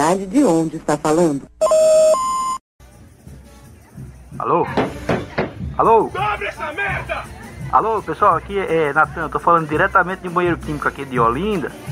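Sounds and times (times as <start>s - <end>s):
speech: 0.1s - 2.1s, 4.4s - 5.1s, 5.8s - 11.8s
two-tone electronic beep from an answering machine: 1.6s - 2.6s.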